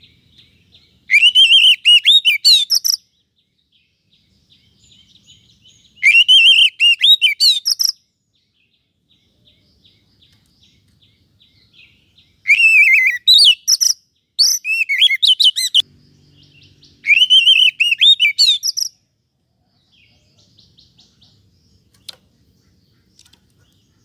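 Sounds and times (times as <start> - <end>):
Oriental magpie-robin singing rich varied whistles and harsh chattering notes: 1.1 - 3.0, 5.9 - 8.0, 12.4 - 15.8, 17.0 - 19.0.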